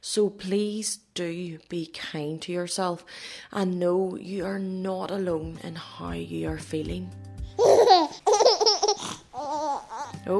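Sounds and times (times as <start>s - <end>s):
speech: 0.0s - 7.3s
babies babbling and laughing in the room next door: 7.6s - 10.3s.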